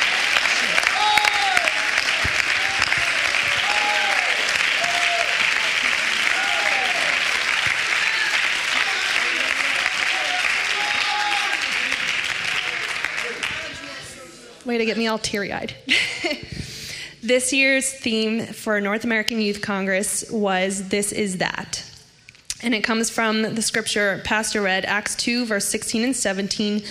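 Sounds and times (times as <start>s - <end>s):
audience clapping hands: 0.0s - 14.6s
speech: 14.8s - 16.1s, 17.3s - 21.9s, 22.6s - 26.9s.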